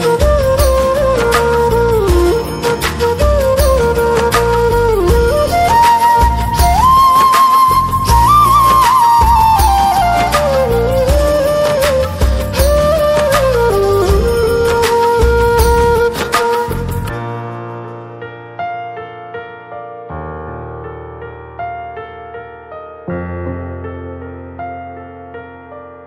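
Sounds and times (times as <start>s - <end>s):
flute: 0.0s - 17.8s.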